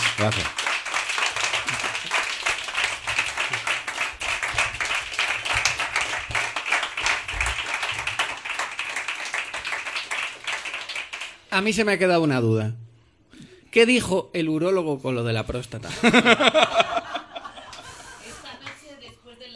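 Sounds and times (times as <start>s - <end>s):
audience applause: 0.0s - 11.5s
speech: 0.2s - 0.6s, 11.6s - 12.8s, 13.7s - 16.9s
laughter: 15.9s - 18.7s.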